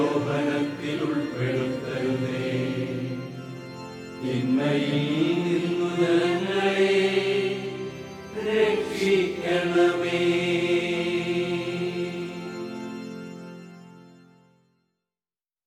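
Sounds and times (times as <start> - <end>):
chanting: 0.0 - 3.3, 4.2 - 12.5.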